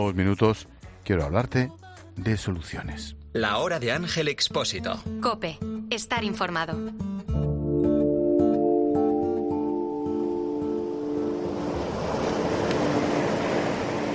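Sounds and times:
speech: 0:00.0 - 0:07.1
sustained tonal music: 0:07.4 - 0:14.1
wind: 0:09.2 - 0:14.1
open sea waves off the coast: 0:09.8 - 0:14.1.

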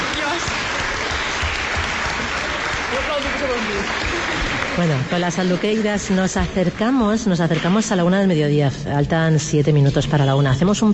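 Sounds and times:
audience applause: 0:00.0 - 0:06.9
speech: 0:03.2 - 0:10.9.

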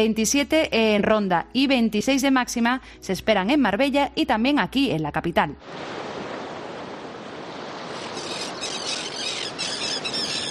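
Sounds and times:
speech: 0:00.0 - 0:06.1
seagulls calling: 0:07.8 - 0:10.4.

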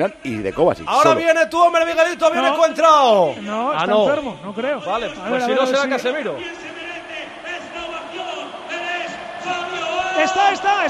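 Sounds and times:
speech: 0:00.0 - 0:06.7
stadium crowd ovation: 0:04.9 - 0:10.8.

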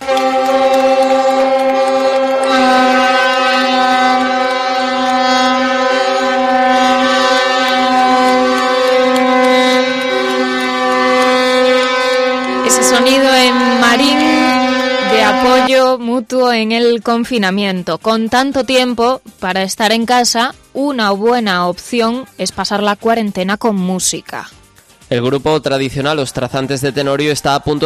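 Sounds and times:
wavering emergency sirens: 0:00.0 - 0:15.7
deep ship horns blaring in the port of Marín: 0:00.0 - 0:16.0
speech: 0:16.6 - 0:27.8.

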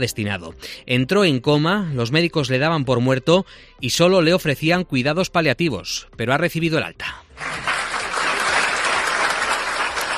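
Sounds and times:
speech: 0:00.0 - 0:07.7
applause as a patient leaves hospital: 0:07.4 - 0:10.1.

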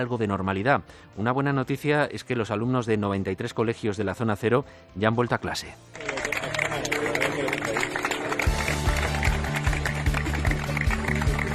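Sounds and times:
speech: 0:00.0 - 0:06.1
soldiers applauding to welcome students: 0:05.9 - 0:11.5.

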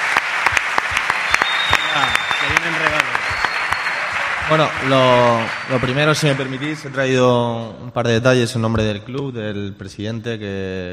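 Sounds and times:
small group clapping: 0:00.0 - 0:07.3
speech: 0:02.0 - 0:03.0, 0:04.5 - 0:10.9.

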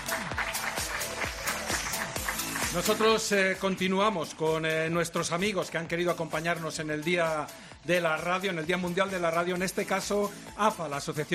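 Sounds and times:
applause: 0:00.0 - 0:03.7
speech: 0:02.8 - 0:11.3.

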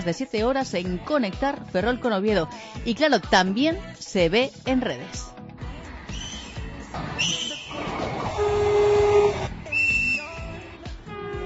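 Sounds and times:
speech: 0:00.0 - 0:05.4
narrow-gauge train whistle toots: 0:07.2 - 0:10.4, 0:11.1 - 0:11.4.

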